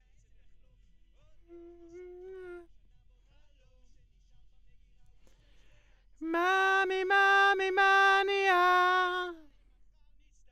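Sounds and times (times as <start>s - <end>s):
backing vocals: 1.5s - 2.7s, 6.2s - 9.4s.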